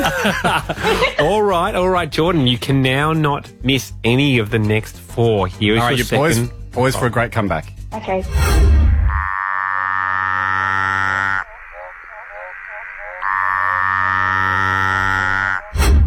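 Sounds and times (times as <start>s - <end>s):
laughter: 0.0s - 1.8s
speech: 0.1s - 8.8s
tree frog calling: 9.1s - 15.8s.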